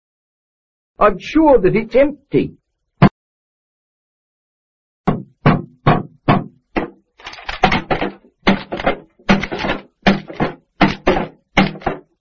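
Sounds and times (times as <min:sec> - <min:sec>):
speech: 0:01.0 - 0:02.6
banging on a ticket machine: 0:05.1 - 0:12.1.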